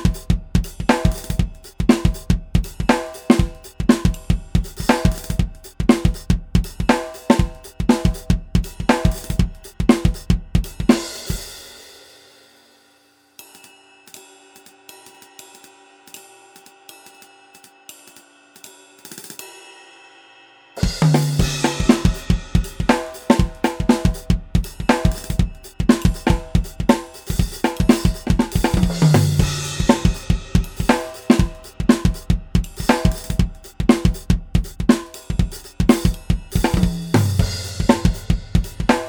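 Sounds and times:
drums: 0.0s - 19.8s, 20.8s - 39.0s.

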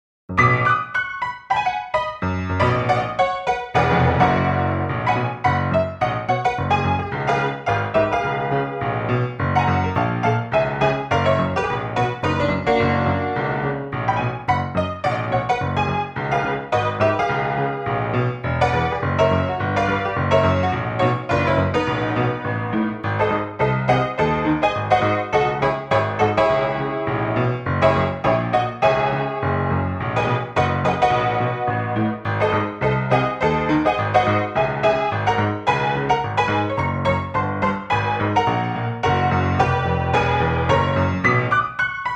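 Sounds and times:
boogie played on a Synclavier: 0.3s - 42.1s.

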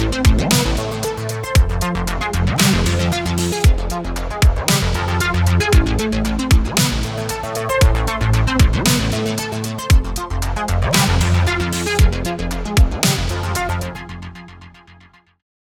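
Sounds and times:
orbiting synth music: 0.0s - 15.0s.

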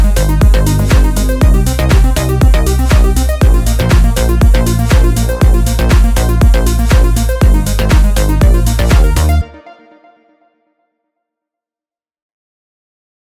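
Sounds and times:
warm melodic house music: 0.0s - 10.3s.

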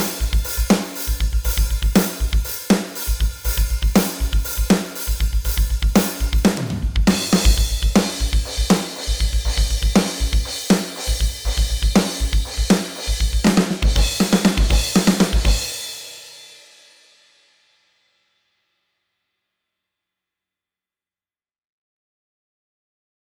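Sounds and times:
standard metal drums: 0.0s - 15.8s.

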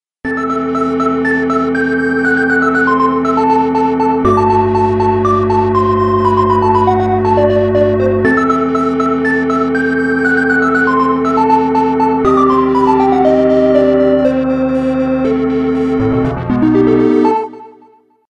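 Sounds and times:
synthesizer pad: 0.3s - 18.0s.

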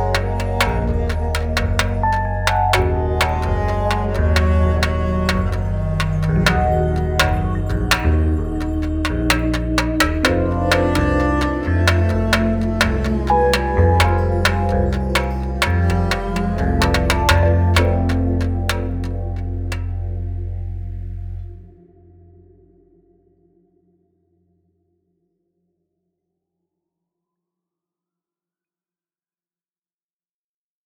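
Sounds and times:
space tamborim: 0.0s - 21.5s.

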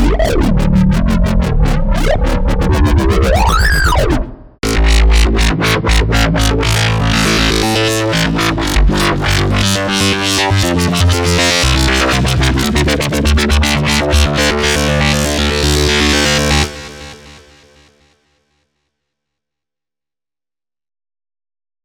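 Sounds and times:
dubstep bass: 0.0s - 16.8s.

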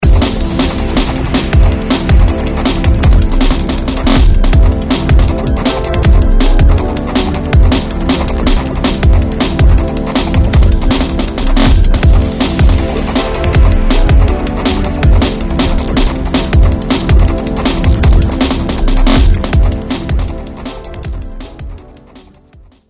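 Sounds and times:
drum and bass music: 0.0s - 22.8s.

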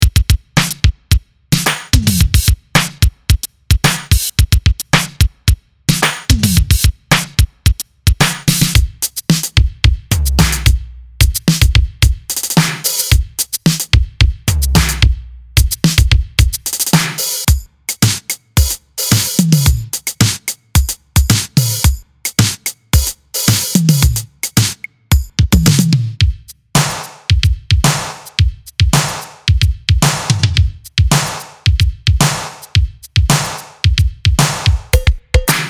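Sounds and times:
boogie funk music: 0.0s - 35.6s.

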